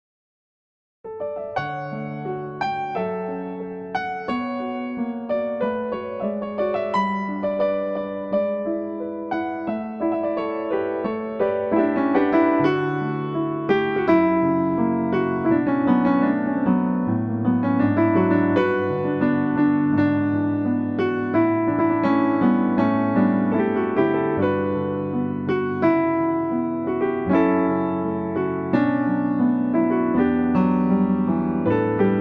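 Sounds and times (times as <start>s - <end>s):
piano cover: 1.1s - 32.1s.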